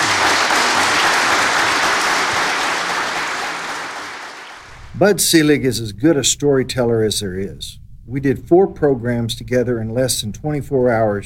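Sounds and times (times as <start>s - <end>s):
audience applause: 0.0s - 4.7s
speech: 5.0s - 11.2s.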